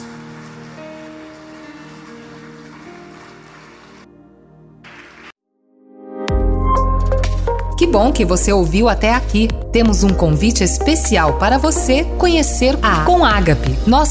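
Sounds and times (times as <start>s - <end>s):
audience applauding: 0.0s - 4.2s, 4.8s - 5.3s
soft sustained music: 0.0s - 14.1s
speech: 7.8s - 14.1s.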